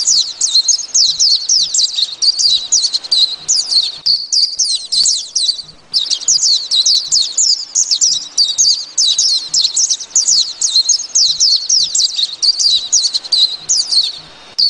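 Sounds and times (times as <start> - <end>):
white-eye song: 0.0 - 14.6.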